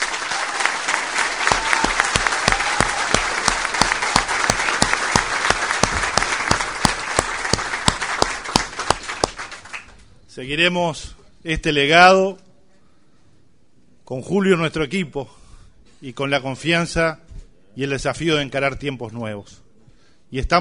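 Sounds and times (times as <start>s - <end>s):
audience applause: 0.0s - 10.0s
speech: 10.4s - 12.4s, 14.1s - 15.4s, 16.0s - 17.2s, 17.8s - 19.6s, 20.3s - 20.6s.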